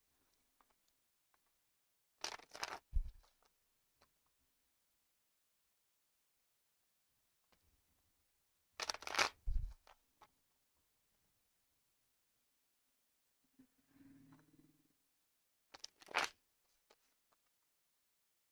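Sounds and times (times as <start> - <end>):
playing cards shuffled for a tarot-style reading: 2.2 - 3.4, 8.8 - 10.0, 15.8 - 17.1.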